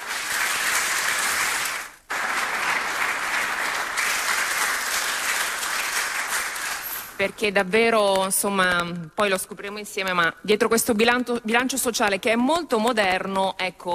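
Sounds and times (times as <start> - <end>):
audience applause: 0.0 - 7.2
speech: 7.2 - 13.9.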